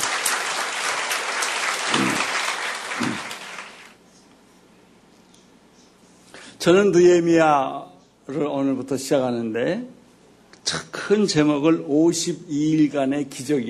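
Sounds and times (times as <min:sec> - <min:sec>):
audience applause: 0:00.0 - 0:04.0
speech: 0:06.6 - 0:10.0, 0:10.6 - 0:13.6.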